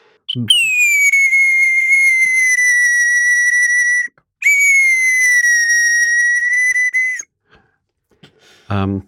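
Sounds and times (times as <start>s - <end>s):
bird whistle imitating a nightingale: 0.3s - 7.2s.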